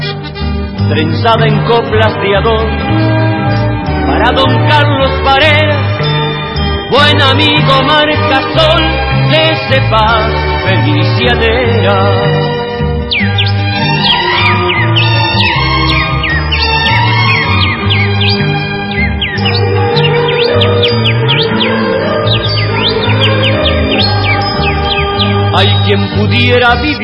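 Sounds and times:
loud musical backing: 0.0 - 27.0
speech: 0.9 - 3.1, 4.2 - 5.9, 6.9 - 13.2, 25.6 - 27.0
birds chirping and whistling: 2.8 - 7.9, 12.9 - 27.0.

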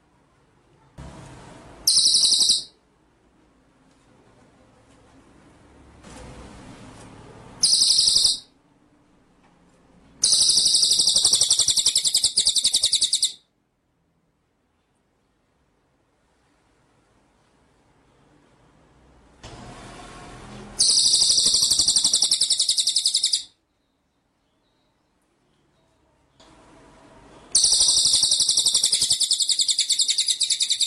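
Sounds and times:
faint low hum: 0.0 - 30.8
White-rumped shama song: 1.8 - 2.8, 7.6 - 8.5, 10.2 - 13.4, 20.8 - 26.1, 27.5 - 30.8.

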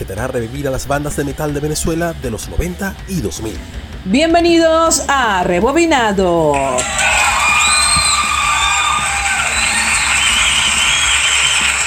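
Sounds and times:
speech: 0.0 - 7.1
studio audience cheering and whooping: 6.8 - 11.8.

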